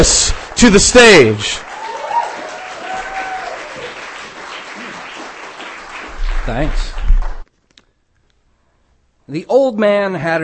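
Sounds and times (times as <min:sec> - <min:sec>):
speech: 0:00.0 - 0:01.7, 0:06.4 - 0:06.9, 0:09.3 - 0:10.4
audience applause at a literary reading: 0:00.0 - 0:07.4.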